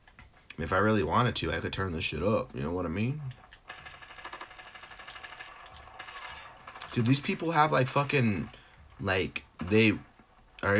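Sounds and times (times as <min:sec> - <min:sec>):
speech: 0:00.6 - 0:03.4, 0:06.9 - 0:10.7
video game pistol gunfire: 0:03.7 - 0:06.8.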